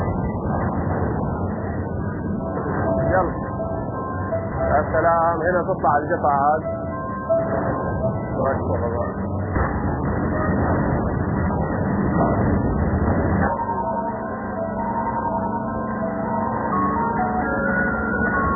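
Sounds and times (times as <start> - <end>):
low mechanical hum: 0.0 - 18.5
factory warning electronic chime melody: 1.4 - 10.5, 13.4 - 18.5
speech: 4.9 - 6.8, 8.4 - 9.6.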